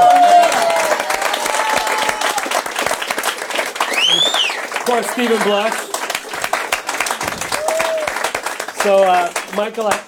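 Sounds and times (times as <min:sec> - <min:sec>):
audience applause: 0:00.0 - 0:10.0
whistles from the audience: 0:03.8 - 0:04.7
speech: 0:04.9 - 0:05.9, 0:08.8 - 0:10.0.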